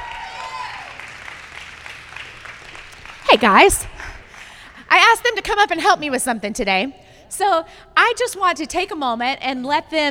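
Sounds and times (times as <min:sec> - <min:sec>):
audience applause: 0:00.0 - 0:04.8
speech: 0:03.3 - 0:04.0, 0:05.2 - 0:10.1.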